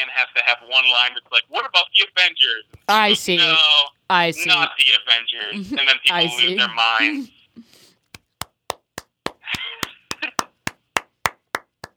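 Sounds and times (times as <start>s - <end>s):
speech: 0.2s - 7.7s
one person clapping hands: 8.0s - 11.9s.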